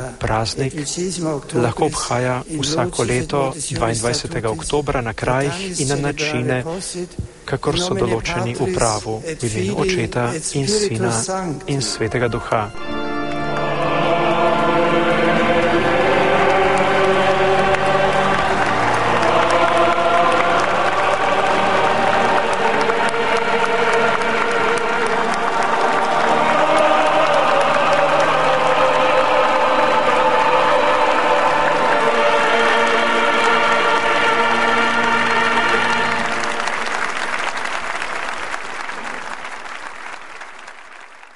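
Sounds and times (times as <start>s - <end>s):
speech: 0.2s - 13.0s
sustained singing: 7.2s - 38.9s
large crowd applauding and cheering: 12.0s - 41.3s.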